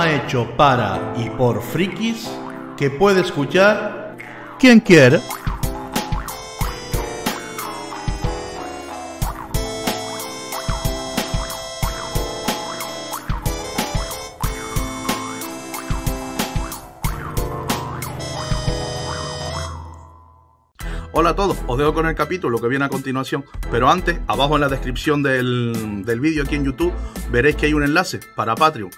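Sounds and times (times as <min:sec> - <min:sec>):
speech: 0:00.0 - 0:04.0, 0:04.6 - 0:05.6, 0:21.8 - 0:28.9
upbeat electronic podcast opening theme with punchy beat and synth: 0:00.0 - 0:20.2.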